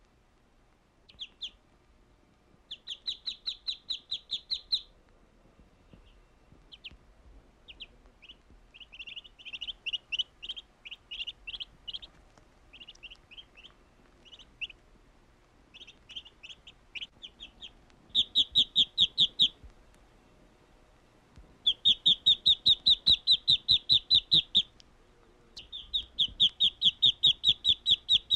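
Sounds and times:
duck peeping with thin high downslurred notes: 0:01.1 - 0:01.6, 0:02.6 - 0:05.0, 0:05.9 - 0:07.0, 0:07.6 - 0:14.8, 0:15.7 - 0:19.8, 0:21.6 - 0:24.9, 0:25.5 - 0:28.3.

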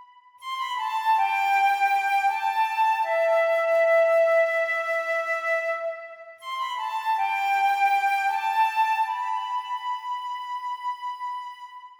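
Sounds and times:
flute: 0:00.0 - 0:11.9.

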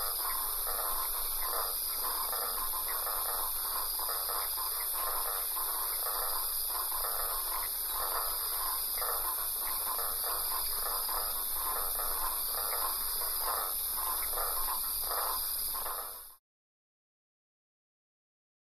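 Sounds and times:
frogs calling with soft pulsed notes: 0:00.0 - 0:16.4.

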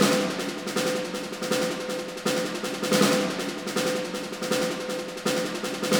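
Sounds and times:
snare drum: 0:00.0 - 0:05.9.

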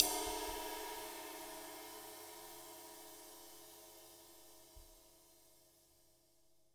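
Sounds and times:
cymbal: 0:00.0 - 0:05.8.

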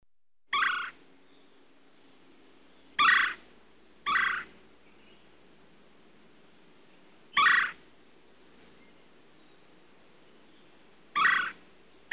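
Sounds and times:
woodpecker harsh squawks: 0:00.5 - 0:01.0, 0:03.0 - 0:03.4, 0:04.0 - 0:04.5, 0:07.3 - 0:07.8, 0:11.2 - 0:12.1.

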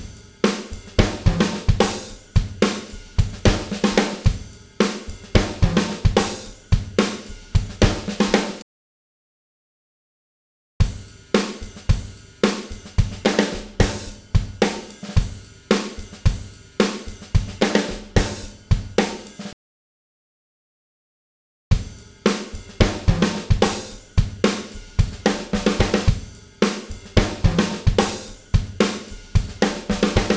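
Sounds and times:
drum beat loop: 0:00.0 - 0:08.6, 0:10.8 - 0:19.5, 0:21.7 - 0:30.3.

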